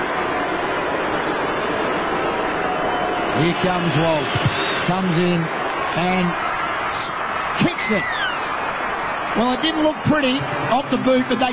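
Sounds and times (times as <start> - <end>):
stadium crowd of 50,000 cheering: 0.0 - 11.5
speech: 3.4 - 8.2, 9.4 - 11.5.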